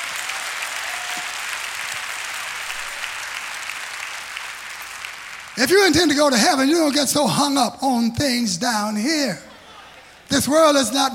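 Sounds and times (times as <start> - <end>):
audience clapping hands: 0.0 - 7.1
speech: 5.6 - 9.5, 10.3 - 11.1.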